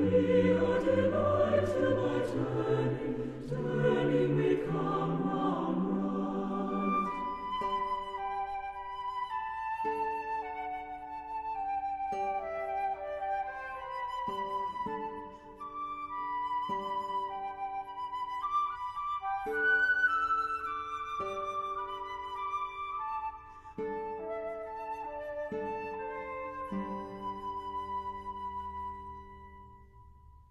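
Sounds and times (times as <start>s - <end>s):
chorus singing: 0.0s - 9.2s
flute: 0.0s - 30.4s
guitar: 0.0s - 30.4s.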